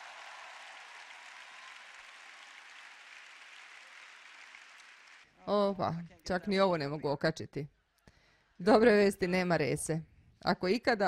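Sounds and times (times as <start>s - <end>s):
faint audience applause at a religious talk: 0.0s - 5.5s
speech: 5.5s - 7.8s, 8.6s - 11.0s.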